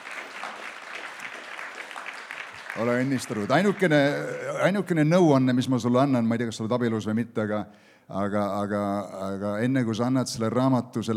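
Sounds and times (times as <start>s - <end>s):
audience applause at a gathering: 0.0s - 4.3s
speech: 2.8s - 11.1s.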